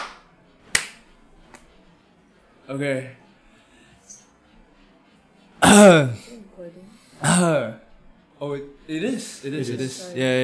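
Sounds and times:
group clapping once: 0.0 - 1.0
speech: 2.7 - 3.2, 5.7 - 7.8, 8.4 - 10.4.

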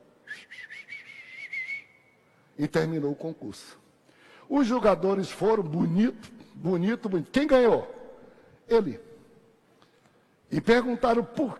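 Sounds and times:
person whistling an imitation of birdsong: 0.2 - 2.2
speech: 2.6 - 3.8, 4.5 - 8.0, 8.7 - 9.1, 10.5 - 11.5.

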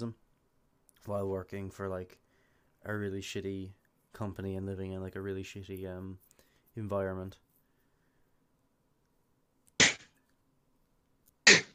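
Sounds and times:
speech: 0.0 - 0.2, 1.0 - 2.2, 2.8 - 7.4
sneeze: 9.8 - 10.2, 11.4 - 11.7.

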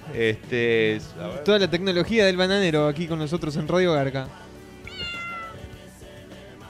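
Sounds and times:
speech: 0.1 - 4.5
cat meow played from a phone: 4.8 - 5.7.

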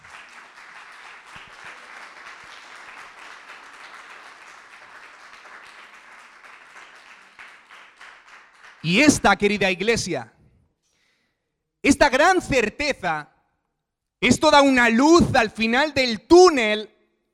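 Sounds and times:
applause: 0.0 - 10.1
speech: 8.8 - 10.4, 11.8 - 13.3, 14.2 - 16.9.

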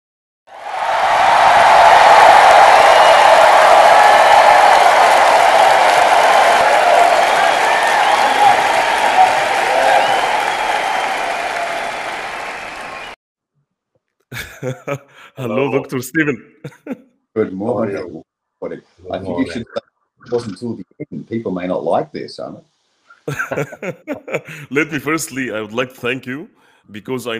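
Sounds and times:
audience applause: 0.5 - 13.2, 23.3 - 25.5
laughter: 14.3 - 17.0, 23.3 - 26.3
speech: 14.6 - 27.3.

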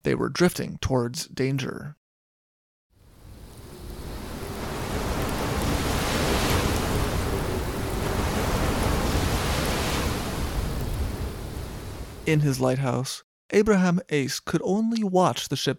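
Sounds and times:
speech: 0.1 - 2.0, 12.2 - 15.7
storm waves churning at sea: 3.0 - 12.9.

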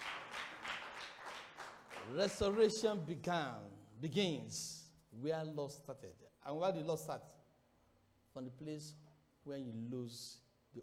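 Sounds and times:
audience clapping: 0.0 - 3.0
speech: 2.1 - 7.4, 8.4 - 10.8.

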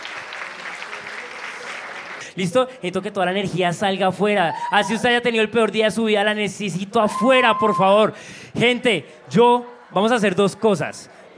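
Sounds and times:
crowd applause: 0.0 - 2.4
speech: 2.3 - 11.3.

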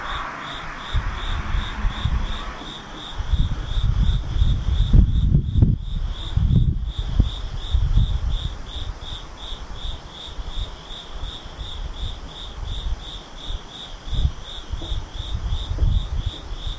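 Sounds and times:
insect chirping: 0.0 - 16.7
low rumbling thumps: 0.8 - 8.6, 14.1 - 16.7.

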